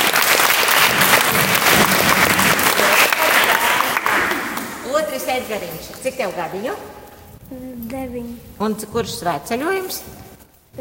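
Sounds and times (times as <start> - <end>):
audience applause: 0.0 - 4.9
speech: 5.4 - 10.2.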